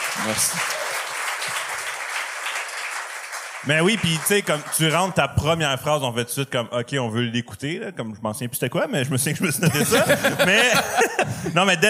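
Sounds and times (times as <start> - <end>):
audience applause: 0.0 - 5.2
speech: 0.2 - 0.9, 3.6 - 11.8
laughter: 9.3 - 11.8.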